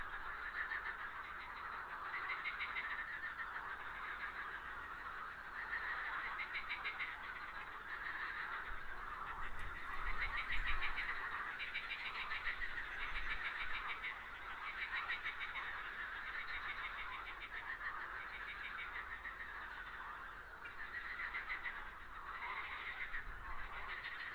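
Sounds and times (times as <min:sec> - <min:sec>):
frog chorus croaking: 0:00.0 - 0:24.3.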